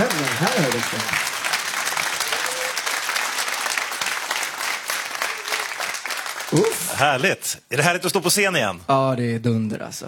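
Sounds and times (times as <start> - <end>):
audience applause after a stage performance: 0.0 - 7.3
speech: 0.4 - 1.3, 6.5 - 10.0.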